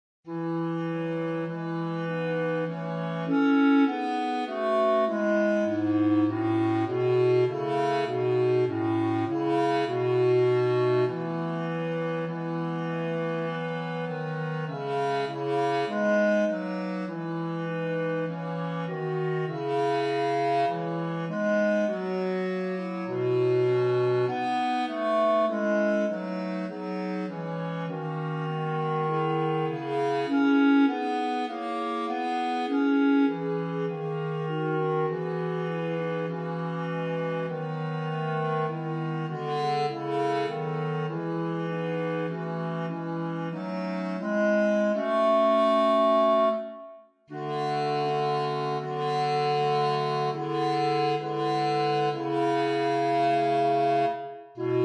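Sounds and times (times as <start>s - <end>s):
bass: 0.3s - 54.8s.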